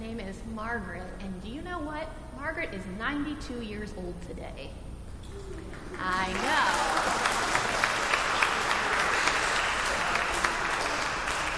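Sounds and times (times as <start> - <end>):
speech: 0.6 - 7.5
audience applause: 5.4 - 11.5.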